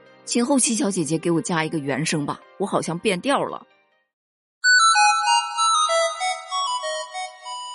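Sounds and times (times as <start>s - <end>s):
speech: 0.3s - 3.8s
classic mobile phone ringtone: 4.6s - 7.7s.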